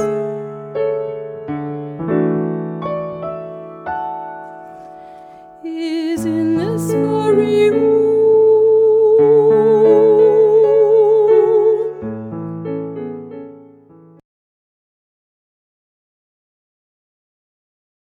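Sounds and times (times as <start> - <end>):
person singing: 0.0 - 1.2, 5.6 - 12.3.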